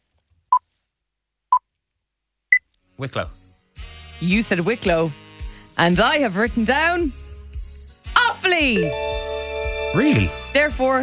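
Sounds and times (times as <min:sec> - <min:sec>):
speech: 0:03.0 - 0:03.4, 0:04.2 - 0:05.2, 0:05.8 - 0:07.2, 0:08.5 - 0:09.1, 0:09.9 - 0:11.0
three beeps: 0:08.8 - 0:10.8.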